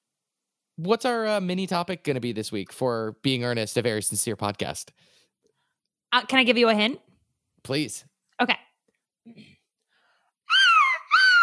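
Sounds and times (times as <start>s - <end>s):
speech: 0.8s - 5.2s, 6.1s - 8.6s
person imitating seagull cries: 10.5s - 11.4s.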